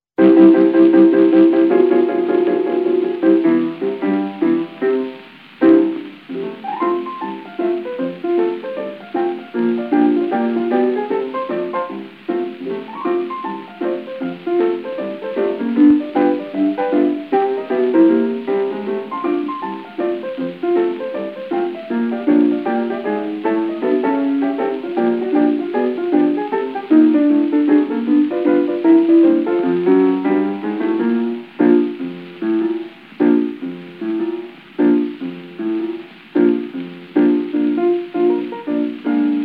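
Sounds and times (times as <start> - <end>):
blues music: 0.2 - 39.4.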